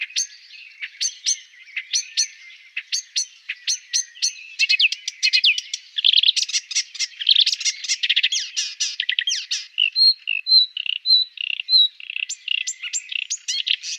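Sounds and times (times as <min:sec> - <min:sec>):
Marsh warbler song: 0:00.0 - 0:13.9.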